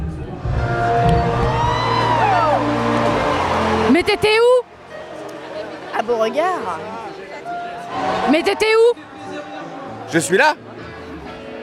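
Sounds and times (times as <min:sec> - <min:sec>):
festival crowd singing along at concert: 0:00.0 - 0:05.8, 0:07.5 - 0:10.0
speech: 0:04.0 - 0:04.6, 0:06.1 - 0:07.0, 0:08.2 - 0:09.1, 0:10.1 - 0:10.6.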